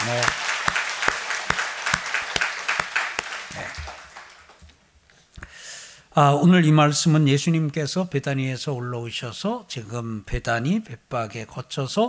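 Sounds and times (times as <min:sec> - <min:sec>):
audience applause: 0:00.0 - 0:04.7
speech: 0:06.2 - 0:12.0.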